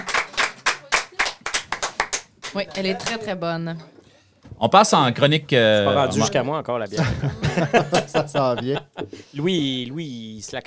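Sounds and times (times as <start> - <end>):
laughter: 0.0 - 3.4, 6.0 - 10.1
hand clapping from a few people: 0.0 - 3.6, 7.0 - 8.9
speech: 2.5 - 4.0, 4.6 - 10.6.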